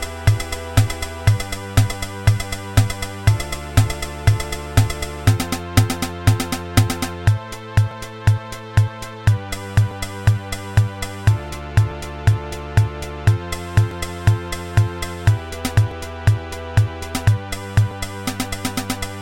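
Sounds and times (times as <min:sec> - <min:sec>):
dry keyboard preset sound: 0:00.0 - 0:19.2.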